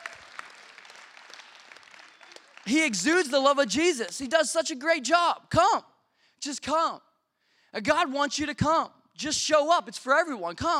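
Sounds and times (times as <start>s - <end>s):
crowd applauding: 0.0s - 3.4s
speech: 2.7s - 7.1s, 7.7s - 10.7s.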